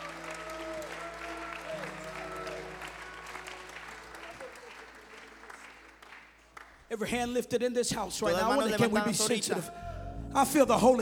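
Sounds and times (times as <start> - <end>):
audience clapping hands: 0.0 - 7.2
speech: 6.9 - 11.0.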